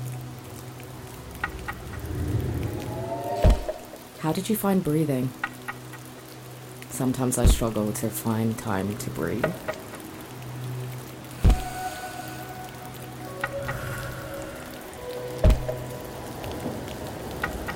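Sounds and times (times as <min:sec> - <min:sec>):
rain: 0:00.0 - 0:17.7
thunder: 0:01.5 - 0:04.0
speech: 0:04.2 - 0:05.5, 0:07.0 - 0:09.8.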